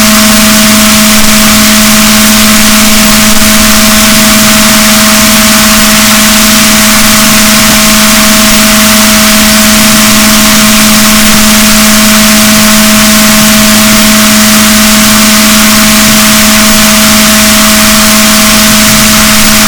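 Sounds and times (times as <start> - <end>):
boat: 0.0 - 19.6.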